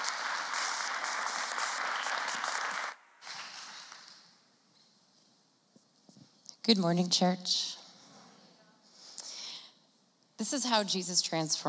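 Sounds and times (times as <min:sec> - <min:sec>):
church congregation applauding a speaker: 0:00.0 - 0:04.4
speech: 0:06.6 - 0:07.8, 0:10.4 - 0:11.6.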